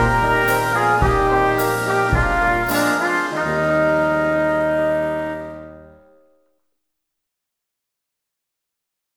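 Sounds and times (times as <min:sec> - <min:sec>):
national anthem music: 0:00.0 - 0:06.3.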